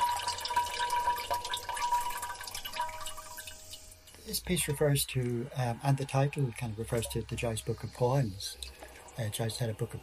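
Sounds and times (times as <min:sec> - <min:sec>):
urinating into ceramic chamber pot: 0:00.0 - 0:04.2
speech: 0:04.3 - 0:08.6, 0:09.2 - 0:10.0.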